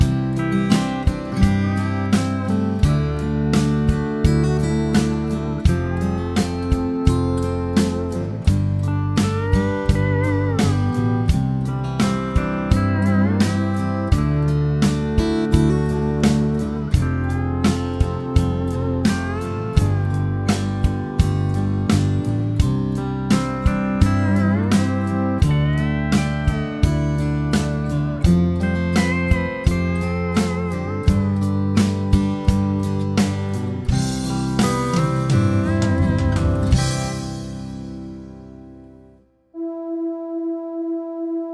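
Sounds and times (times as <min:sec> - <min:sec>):
chord progression with mixture: 0:00.0 - 0:41.5.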